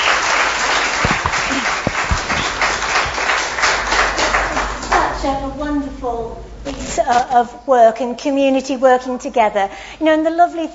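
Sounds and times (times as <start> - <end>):
audience round of applause: 0.0 - 5.0
speech: 6.0 - 10.7.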